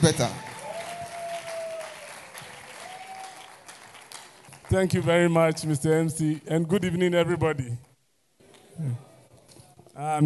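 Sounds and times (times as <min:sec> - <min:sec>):
speech: 0:00.0 - 0:00.5, 0:04.7 - 0:07.9, 0:08.8 - 0:09.1, 0:10.0 - 0:10.2
audience applauding: 0:00.0 - 0:05.0.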